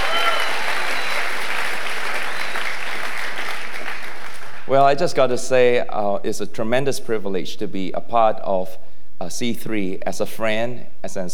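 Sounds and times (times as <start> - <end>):
audience applause: 0.0 - 4.8
speech: 4.7 - 11.3.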